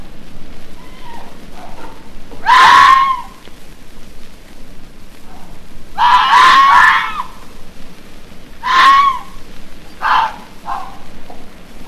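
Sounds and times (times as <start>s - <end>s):
red fox screaming: 0.8s - 1.4s, 2.4s - 3.4s, 6.0s - 7.4s, 8.6s - 9.4s, 10.0s - 11.0s.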